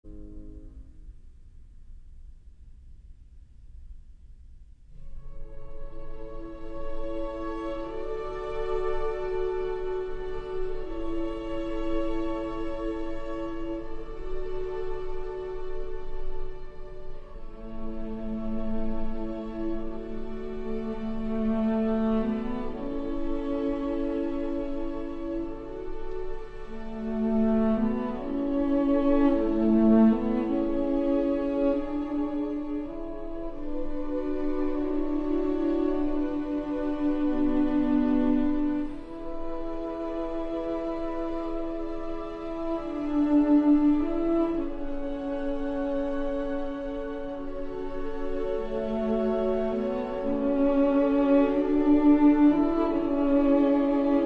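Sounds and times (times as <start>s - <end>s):
cello and strings: 0.0s - 1.3s, 4.9s - 54.2s.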